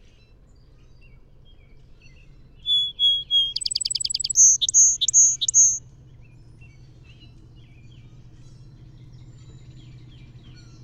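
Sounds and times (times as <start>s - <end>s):
Song Sparrow singing: 0.6s - 10.8s
faint low hum: 2.7s - 5.8s.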